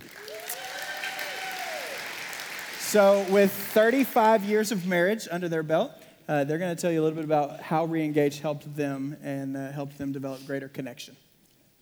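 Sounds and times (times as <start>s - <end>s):
church audience applause welcoming speakers: 0.0s - 5.1s
speech: 2.9s - 11.2s.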